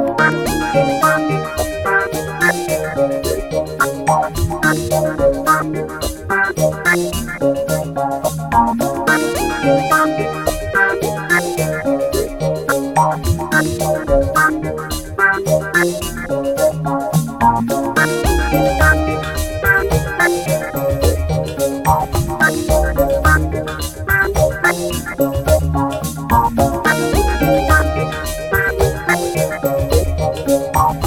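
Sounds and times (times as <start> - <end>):
trance music: 0.2 - 31.0.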